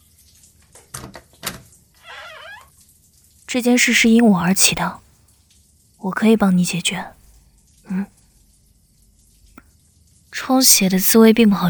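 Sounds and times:
door creaking as it swings open: 1.4 - 2.8
speech: 3.5 - 5.0, 6.0 - 7.2, 7.9 - 8.2, 10.4 - 11.6.

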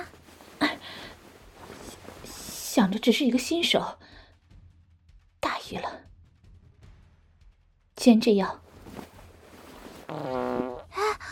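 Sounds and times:
speech: 2.8 - 4.0, 8.0 - 8.6
low buzzy fart during a street wrestling match: 10.0 - 11.0.

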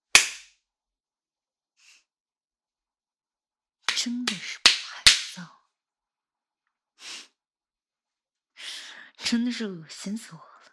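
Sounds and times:
slap in the face: 0.1 - 0.5, 3.9 - 5.4
speech: 4.0 - 4.6, 9.3 - 10.5.

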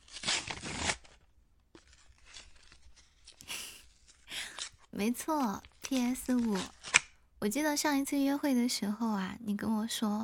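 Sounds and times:
wrapping paper tearing on a gift package: 0.0 - 7.2
speech: 5.0 - 6.8, 7.4 - 10.2.

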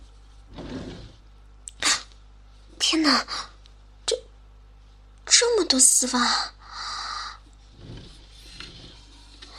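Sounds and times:
drawer being opened: 0.5 - 1.2, 7.7 - 9.4
speech: 2.9 - 3.5, 5.4 - 6.6.

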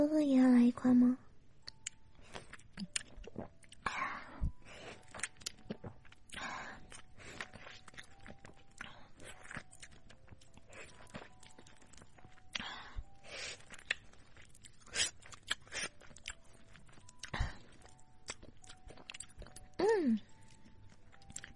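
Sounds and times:
speech: 0.0 - 1.2
moist chewing of a piece of sweet orange: 4.8 - 21.5.

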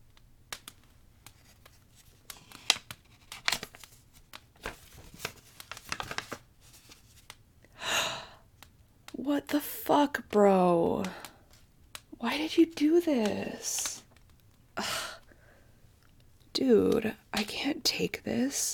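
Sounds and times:
paper envelope crinkling and rustling: 1.2 - 7.4
speech: 9.3 - 11.2, 12.2 - 13.9, 16.6 - 18.7.

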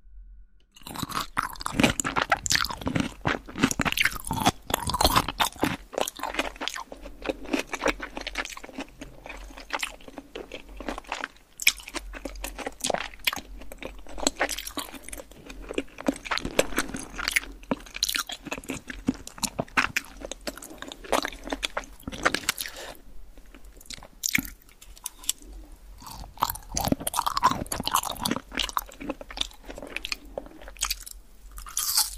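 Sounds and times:
chewing and crunching food while eating: 0.8 - 32.1.

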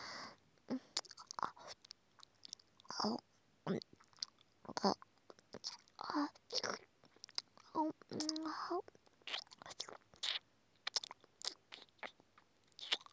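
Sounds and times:
soft breathy sounds: 0.0 - 1.0
chewing very hard food: 1.0 - 3.0, 3.8 - 13.1.

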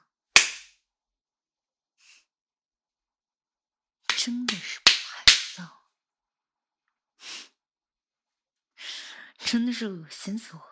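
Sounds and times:
slap in the face: 0.4 - 0.7, 4.1 - 5.6
speech: 4.2 - 4.9, 9.5 - 10.7.

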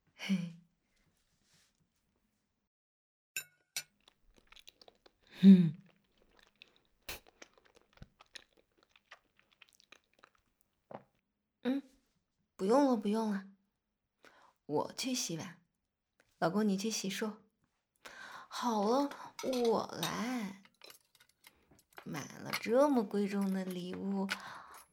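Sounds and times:
speech: 0.3 - 0.5, 5.4 - 5.8, 12.6 - 13.5, 14.7 - 15.6, 16.4 - 17.4, 18.0 - 20.6, 22.1 - 24.6
chewing rice while eating a meal: 4.0 - 11.2, 20.1 - 24.9.

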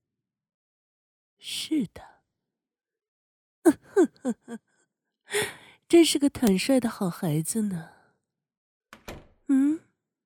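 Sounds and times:
speech: 1.4 - 2.2, 4.0 - 4.7, 5.3 - 8.0
entrance door shutting by itself: 9.0 - 9.4.

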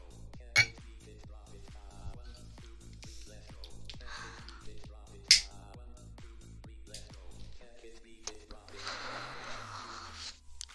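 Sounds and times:
softly pulsing music: 0.0 - 10.7
glasses clinking in a toast: 0.6 - 0.8, 5.3 - 5.5.

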